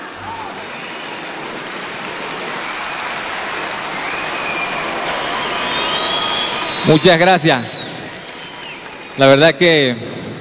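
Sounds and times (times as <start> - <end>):
crowd applauding: 0.0 - 10.4
faint whistles: 4.0 - 8.9
speech: 6.8 - 7.8, 9.2 - 10.2.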